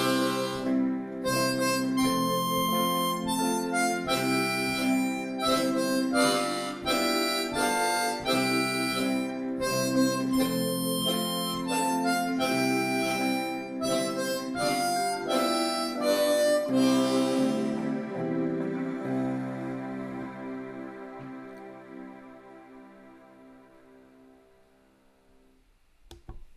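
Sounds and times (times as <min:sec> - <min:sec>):
harmonica melody in C: 0:00.0 - 0:20.3.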